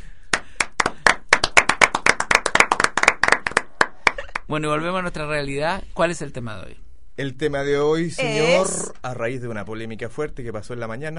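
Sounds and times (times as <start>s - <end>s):
applause: 0.3s - 4.5s
speech: 4.5s - 11.1s.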